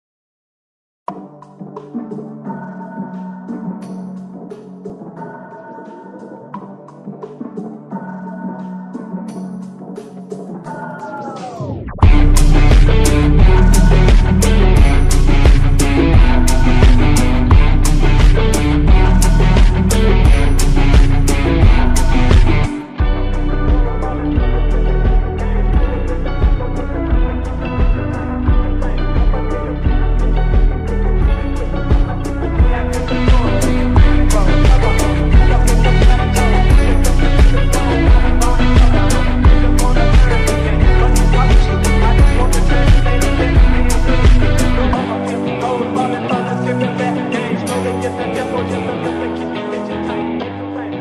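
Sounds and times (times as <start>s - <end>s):
phonk rock music: 1.1s - 51.0s.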